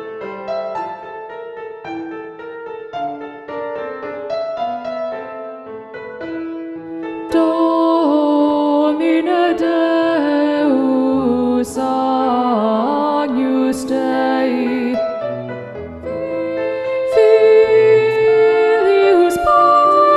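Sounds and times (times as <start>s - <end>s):
soprano and alto voices singing with alto predominant: 7.2s - 15.2s, 16.0s - 20.1s.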